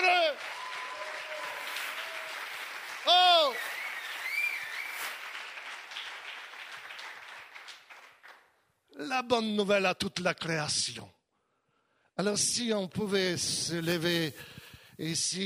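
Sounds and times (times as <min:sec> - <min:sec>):
audience applauding: 0:00.0 - 0:08.5
speech: 0:09.2 - 0:11.2, 0:12.2 - 0:15.4.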